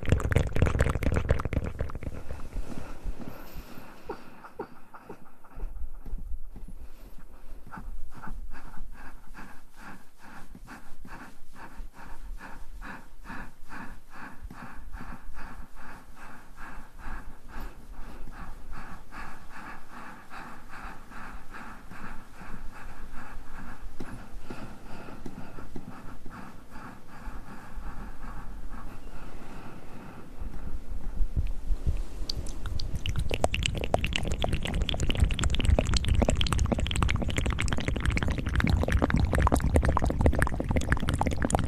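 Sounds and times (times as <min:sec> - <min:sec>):
wet mouth clicks and breathy smacks: 0:00.0 - 0:02.3, 0:31.4 - 0:41.6
rustling and breathy swishes from hand movements: 0:02.0 - 0:38.8.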